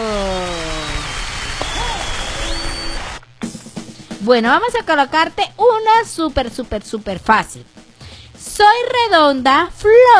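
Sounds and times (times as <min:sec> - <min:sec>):
applause: 0:00.0 - 0:03.2
speech: 0:04.2 - 0:07.8, 0:08.5 - 0:10.1.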